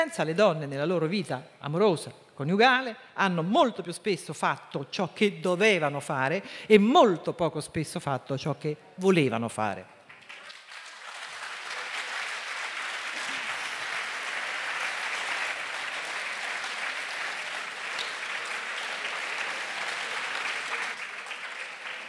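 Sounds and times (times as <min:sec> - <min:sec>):
speech: 0:00.0 - 0:09.9
audience applause: 0:10.1 - 0:22.0.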